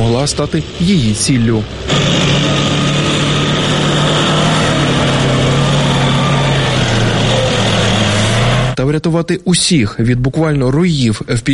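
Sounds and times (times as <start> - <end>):
military vehicles driving along road: 0.0 - 8.8
speech: 0.1 - 2.7, 8.8 - 11.5.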